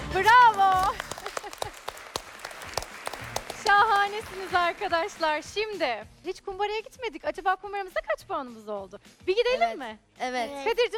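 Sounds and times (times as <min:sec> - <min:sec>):
children clapping in a classroom: 0:00.1 - 0:05.6
speech: 0:04.2 - 0:10.9.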